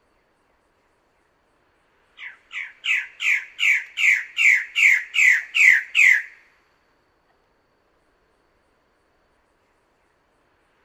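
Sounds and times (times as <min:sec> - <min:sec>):
Bird-of-paradise squawking: 0:02.2 - 0:06.3.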